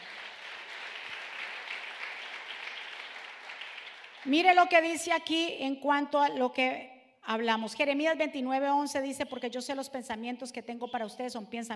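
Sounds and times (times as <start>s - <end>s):
audience applause: 0.0s - 4.3s
speech: 4.2s - 11.7s.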